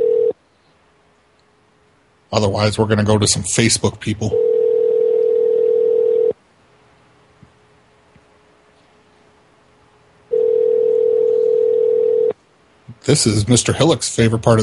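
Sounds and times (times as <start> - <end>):
telephone ringback tone: 0.0 - 0.4, 4.3 - 6.4, 10.3 - 12.3
speech: 2.3 - 4.5, 13.1 - 14.6.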